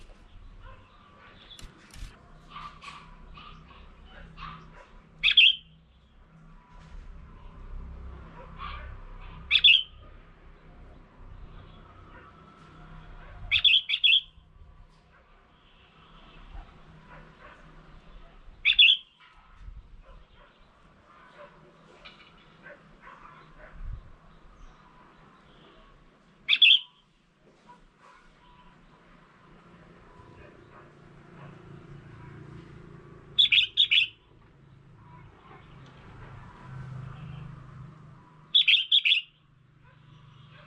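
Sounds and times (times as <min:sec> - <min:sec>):
red-whiskered bulbul calls: 0:05.2 - 0:05.7, 0:09.5 - 0:10.0, 0:13.5 - 0:14.4, 0:18.6 - 0:19.2, 0:26.5 - 0:26.9, 0:33.4 - 0:34.2, 0:38.6 - 0:39.4.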